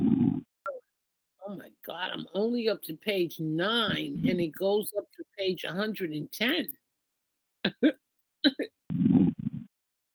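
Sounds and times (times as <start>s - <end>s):
person snoring: 0.0s - 0.5s, 8.9s - 9.7s
speech: 1.9s - 6.8s, 7.6s - 8.7s.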